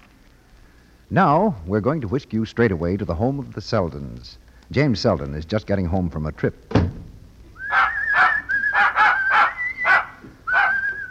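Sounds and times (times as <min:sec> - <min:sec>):
speech: 0:01.1 - 0:07.0
dog whimpering: 0:07.7 - 0:11.1.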